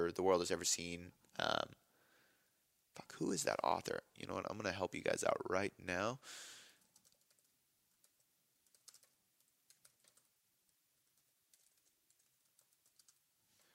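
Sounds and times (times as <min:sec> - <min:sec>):
speech: 0:00.1 - 0:01.8, 0:03.0 - 0:06.6
typing on a computer keyboard: 0:06.8 - 0:10.4, 0:11.0 - 0:13.2.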